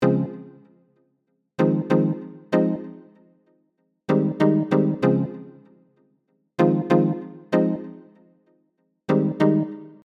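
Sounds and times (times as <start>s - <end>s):
keyboard playing: 1.6s - 3.0s, 4.1s - 5.4s, 6.6s - 7.9s, 9.1s - 10.0s.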